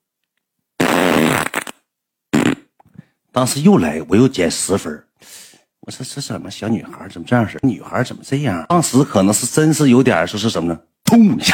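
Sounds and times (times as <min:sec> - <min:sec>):
fart: 0:00.8 - 0:02.8
speech: 0:03.4 - 0:11.5.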